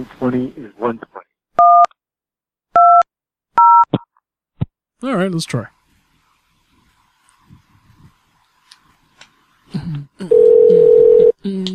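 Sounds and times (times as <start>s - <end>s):
speech: 0.0s - 1.2s, 5.0s - 5.8s
touch-tone beeps dialing a room extension on a motel phone line: 3.6s - 3.9s, 10.3s - 11.3s.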